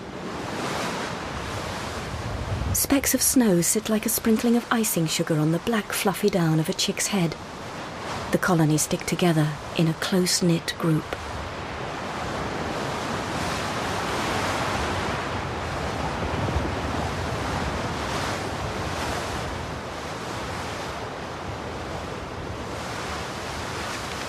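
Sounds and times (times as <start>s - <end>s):
icy wind blowing through a penguin colony: 0.0s - 6.0s, 6.7s - 24.2s
speech: 2.8s - 7.6s, 8.3s - 11.2s.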